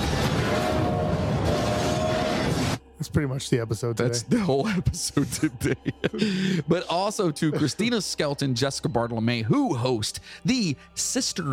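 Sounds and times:
train sound effect: 0:00.0 - 0:02.8
speech: 0:03.0 - 0:11.5
laughter: 0:04.2 - 0:08.1.

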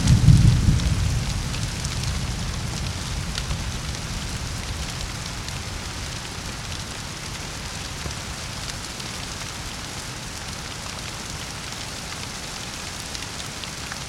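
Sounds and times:
night alpine thunderstorm above Kamniška Bistrica: 0:00.0 - 0:05.9.

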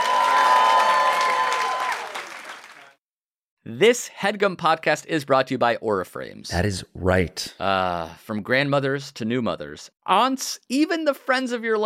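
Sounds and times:
live crowd cheering and whoops: 0:00.0 - 0:02.6
live crowd applause: 0:00.0 - 0:03.0
speech: 0:03.7 - 0:11.8.

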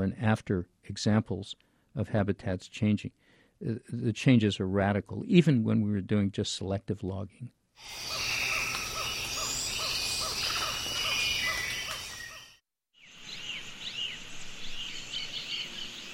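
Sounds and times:
speech: 0:00.1 - 0:08.4
rainforest birds calling on the Osa Peninsula, Costa Rica: 0:07.8 - 0:16.1
rainforest insects buzzing and trilling on the Osa Peninsula, Costa Rica: 0:07.8 - 0:16.1.

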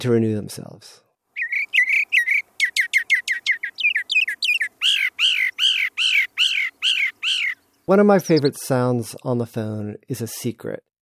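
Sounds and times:
speech: 0:00.0 - 0:01.1, 0:07.9 - 0:10.9
bird singing: 0:01.4 - 0:08.6.

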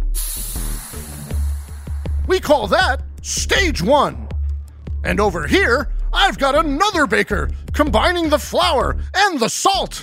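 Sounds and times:
steam hissing from warm water: 0:00.0 - 0:02.2
speech: 0:02.3 - 0:04.2, 0:05.0 - 0:10.0.

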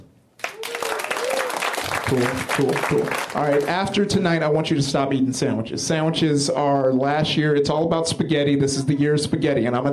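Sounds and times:
voices cheering: 0:00.4 - 0:03.7
crowd applause: 0:00.4 - 0:04.0
speech: 0:02.1 - 0:09.9.

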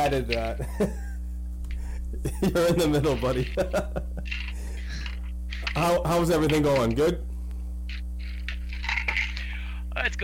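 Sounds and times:
speech: 0:00.0 - 0:01.1, 0:02.2 - 0:04.4, 0:05.8 - 0:07.3, 0:10.0 - 0:10.2
low electrical hum: 0:00.0 - 0:10.2
laughter: 0:00.6 - 0:01.2, 0:02.2 - 0:05.0
pills rattling in a container: 0:03.1 - 0:05.8, 0:08.2 - 0:09.5.

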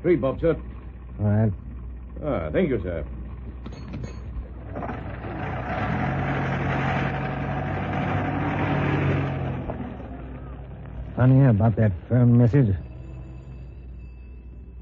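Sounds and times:
speech: 0:00.0 - 0:04.2, 0:11.2 - 0:12.9
taxi engine idling outside house: 0:00.0 - 0:14.8.

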